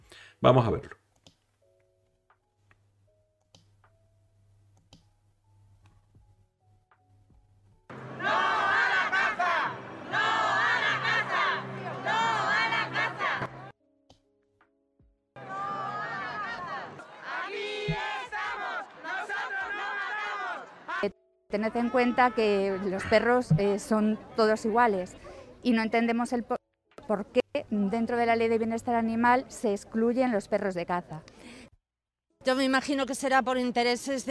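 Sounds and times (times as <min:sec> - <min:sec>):
speech: 0:00.4 - 0:01.0, 0:21.6 - 0:31.6, 0:32.4 - 0:34.3
protest crowd chanting against hunting: 0:07.9 - 0:13.7, 0:15.4 - 0:21.1.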